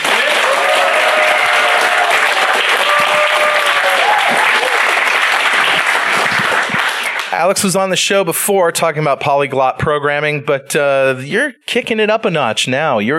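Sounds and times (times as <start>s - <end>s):
audience applause: 0.0s - 7.6s
speech: 7.4s - 13.1s.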